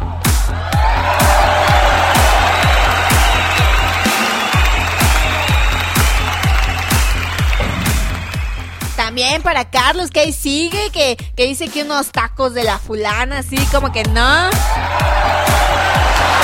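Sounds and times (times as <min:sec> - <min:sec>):
crowd applause and cheers: 0:00.0 - 0:09.4, 0:14.5 - 0:16.4
steady regular thumping beat: 0:00.3 - 0:16.4
speech: 0:09.3 - 0:14.9.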